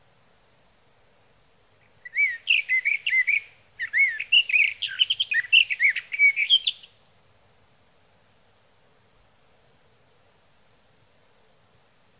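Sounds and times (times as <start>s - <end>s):
Sage thrasher warbling song: 2.1s - 6.9s.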